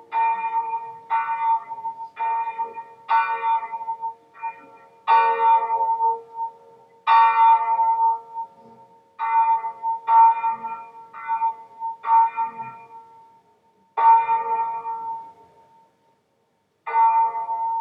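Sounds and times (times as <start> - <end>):
bells ringing: 0.0 - 13.3, 16.9 - 17.7.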